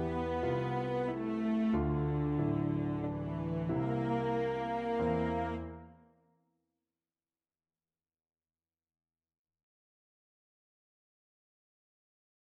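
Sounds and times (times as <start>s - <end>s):
cello sonata: 0.0s - 6.0s.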